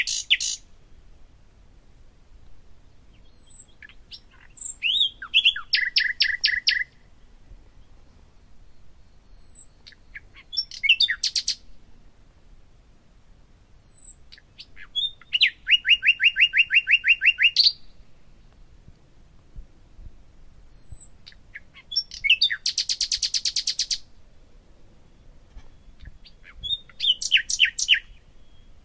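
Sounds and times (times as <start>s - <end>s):
common nightingale singing: 0.0s - 0.6s, 3.2s - 6.9s, 9.2s - 11.6s, 13.8s - 17.8s, 20.6s - 24.0s, 25.6s - 28.8s.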